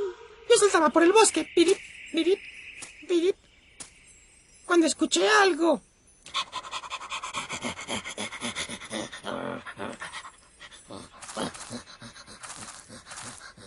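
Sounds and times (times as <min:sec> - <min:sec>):
speech: 0:00.6 - 0:02.5, 0:03.1 - 0:03.4, 0:04.7 - 0:05.9
dog panting: 0:06.3 - 0:13.6.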